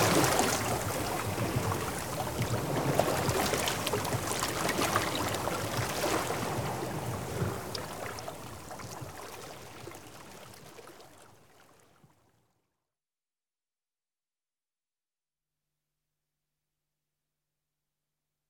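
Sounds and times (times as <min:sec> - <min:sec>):
water filling tide pools: 0:00.0 - 0:09.7.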